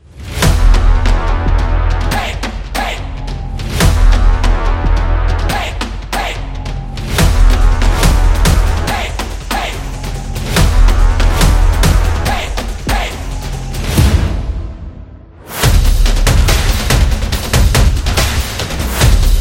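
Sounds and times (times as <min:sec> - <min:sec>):
football drums in a soccer stadium: 0:00.3 - 0:14.9, 0:15.6 - 0:19.3.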